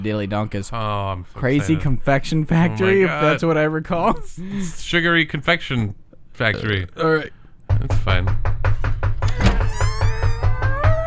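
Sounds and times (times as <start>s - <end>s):
speech: 0.0s - 8.6s
knocking on a door: 7.6s - 11.0s.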